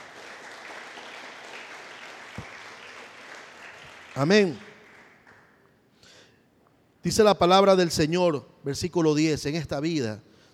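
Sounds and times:
audience applause: 0.0 - 5.6
speech: 4.2 - 4.6, 7.0 - 10.3.

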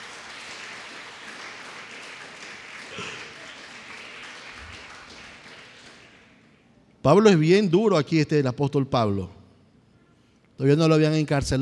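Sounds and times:
audience applauding: 0.0 - 6.4
speech: 7.0 - 9.4, 10.6 - 11.6.

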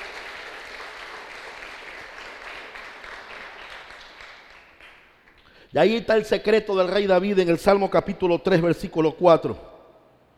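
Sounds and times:
audience applauding: 0.0 - 5.5
speech: 5.7 - 9.7.

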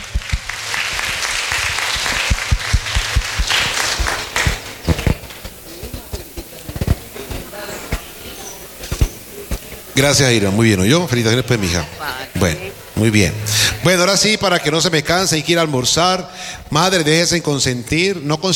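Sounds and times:
audience applause: 0.0 - 14.8
speech: 10.0 - 18.5.

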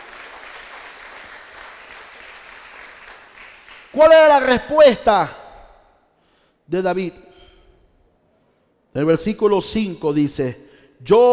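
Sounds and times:
audience applauding: 0.0 - 4.0
speech: 3.9 - 5.4, 6.7 - 7.3, 9.0 - 11.3.

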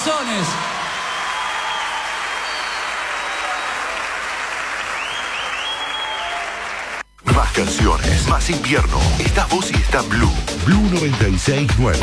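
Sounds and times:
loud applause: 0.0 - 7.0
speech: 0.3 - 0.7, 7.6 - 12.0.

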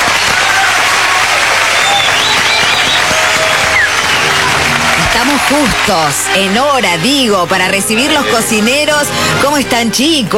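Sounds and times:
faint whoops and cheers: 0.0 - 6.4
studio audience applause: 0.0 - 8.7
speech: 5.5 - 10.3.

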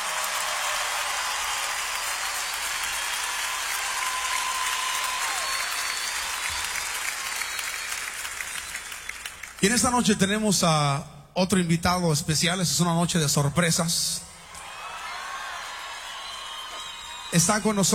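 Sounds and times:
audience applause for an orchestra: 0.0 - 9.6, 14.5 - 17.9
speech: 9.6 - 14.3, 17.4 - 17.9.

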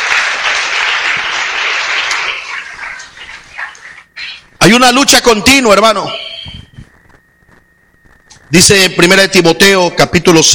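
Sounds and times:
crowd audience applauding: 0.0 - 4.2
speech: 4.7 - 6.2, 8.5 - 10.5.

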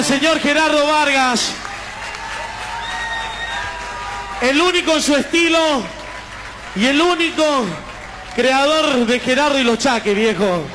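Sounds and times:
speech: 0.0 - 1.7, 4.4 - 6.0, 6.8 - 10.7
audience applause: 0.2 - 10.7
faint cheering: 1.4 - 9.4.

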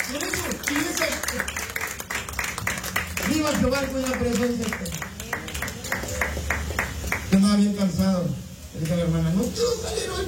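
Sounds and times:
audience clapping hands strongly: 0.0 - 7.4
speech: 0.1 - 1.4, 3.4 - 5.0, 7.4 - 10.2.

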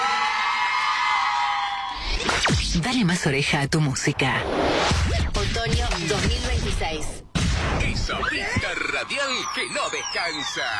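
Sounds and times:
concert audience cheering and whooping: 0.0 - 2.2, 8.1 - 10.7
speech: 2.4 - 7.2, 7.9 - 10.7.

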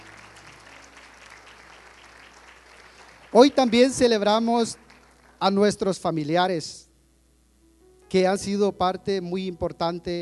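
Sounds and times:
audience clapping: 0.0 - 5.8
speech: 3.3 - 4.8, 5.4 - 6.9, 8.1 - 10.2.

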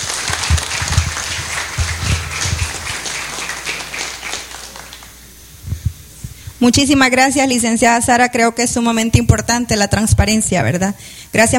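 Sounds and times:
crowd applauding: 0.0 - 5.3
speech: 6.6 - 11.5.

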